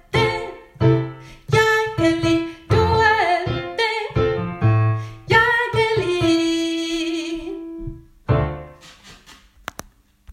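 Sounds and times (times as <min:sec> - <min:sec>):
soprano voice: 0:00.0 - 0:04.4, 0:05.2 - 0:08.0.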